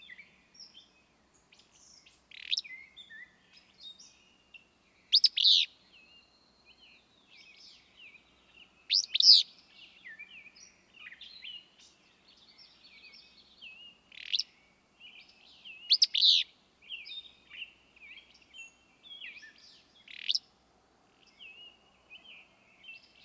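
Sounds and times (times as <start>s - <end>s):
willow flycatcher calling: 2.3s - 2.8s, 5.1s - 5.7s, 8.9s - 9.5s, 14.1s - 14.6s, 15.8s - 17.7s, 20.0s - 20.5s.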